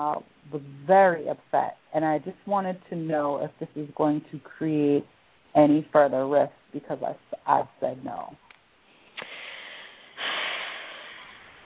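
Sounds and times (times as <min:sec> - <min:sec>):
speech: 0:00.0 - 0:08.4
breathing into the microphone: 0:08.9 - 0:11.6.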